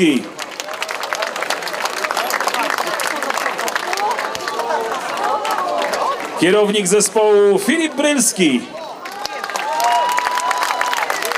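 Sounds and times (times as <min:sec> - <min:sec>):
speech: 0:00.0 - 0:00.4, 0:06.4 - 0:08.9
crowd applauding and cheering in arena: 0:00.0 - 0:06.6, 0:08.8 - 0:11.3.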